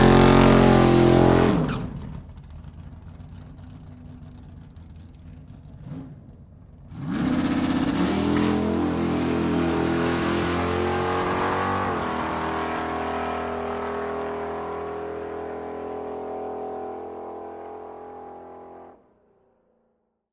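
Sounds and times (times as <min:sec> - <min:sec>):
dragster driving away: 0:00.0 - 0:19.0
dragster engine idling and warming up: 0:02.0 - 0:06.9.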